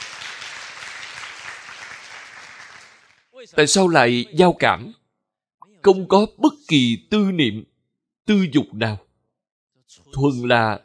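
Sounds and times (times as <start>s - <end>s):
audience applauding a man to encourage him: 0.0s - 3.4s
speech: 3.4s - 5.0s, 5.8s - 7.7s, 8.3s - 9.0s, 9.9s - 10.8s.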